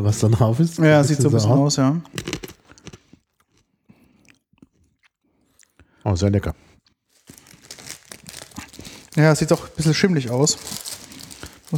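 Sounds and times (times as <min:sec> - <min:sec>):
speech: 0:00.0 - 0:02.4, 0:06.1 - 0:06.7, 0:09.2 - 0:10.8
crunchy chewing of wasabi-coated dried peas: 0:00.0 - 0:11.7.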